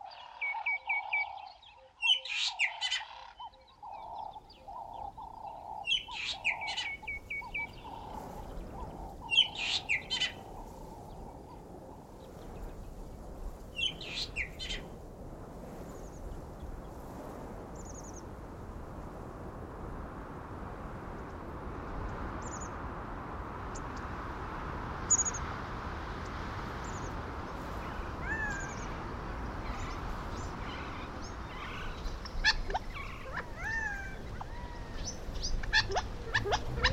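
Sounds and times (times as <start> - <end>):
desert weather and wildlife ambience: 0.0 - 36.9.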